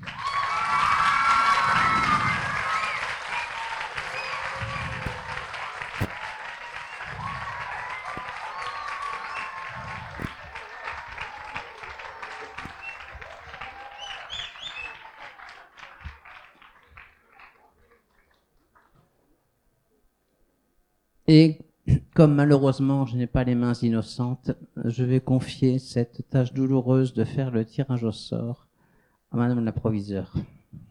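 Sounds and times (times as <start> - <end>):
crowd cheering and whistling: 0.0 - 16.7
crowd applauding: 0.0 - 19.1
speech: 21.3 - 21.6, 22.2 - 28.6, 29.3 - 30.5.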